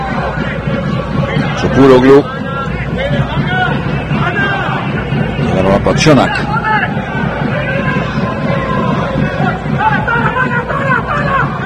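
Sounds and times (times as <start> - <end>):
shouting from the Panionios team bench: 0.0 - 11.6
steady dense crowd hubbub: 0.0 - 11.6
speech: 1.8 - 2.4, 5.8 - 6.6.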